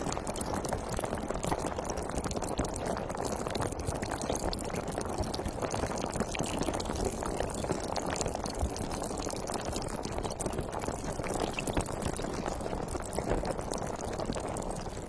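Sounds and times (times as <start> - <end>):
sparkling water fizzing: 0.0 - 15.0.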